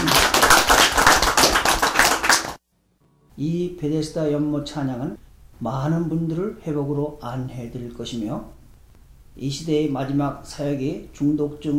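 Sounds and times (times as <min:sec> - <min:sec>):
audience clapping: 0:00.0 - 0:02.6
speech: 0:03.4 - 0:08.6, 0:09.4 - 0:11.7.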